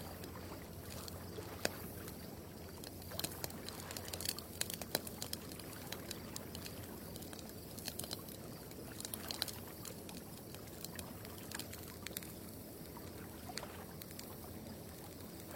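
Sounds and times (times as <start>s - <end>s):
firewood crackling on a quiet night: 0.2s - 15.5s.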